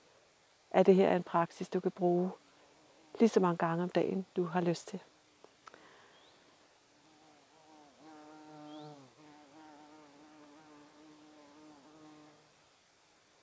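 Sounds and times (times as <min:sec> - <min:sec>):
speech: 0:00.7 - 0:02.4, 0:03.2 - 0:05.1
bumblebee buzzing past: 0:07.0 - 0:12.6.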